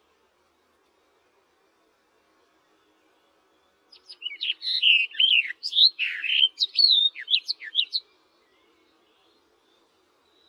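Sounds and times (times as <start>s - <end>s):
barred warbler song: 2.7s - 10.4s.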